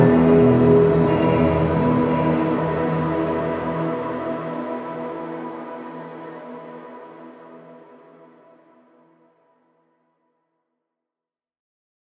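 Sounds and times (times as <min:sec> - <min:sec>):
glass core metal and glass drone: 0:00.0 - 0:04.2.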